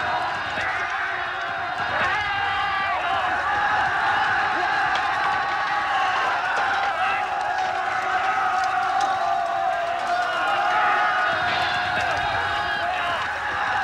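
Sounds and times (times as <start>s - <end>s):
Japanese battle atmosphere: 0.0s - 13.8s.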